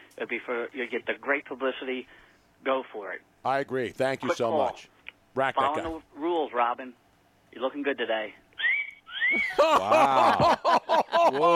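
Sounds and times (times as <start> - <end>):
speech: 0.2 - 8.4, 9.3 - 11.5
wolf whistle: 8.6 - 9.5
laughter: 9.2 - 11.5.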